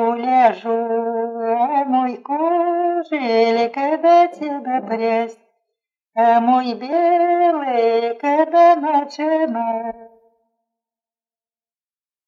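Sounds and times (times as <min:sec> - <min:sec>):
carol singing at a market on Sunday: 0:00.0 - 0:05.4, 0:06.2 - 0:10.1.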